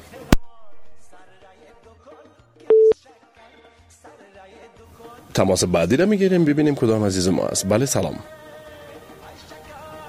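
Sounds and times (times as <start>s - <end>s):
telephone busy signal after a call was cut off: 2.7s - 3.0s
speech: 5.4s - 8.5s.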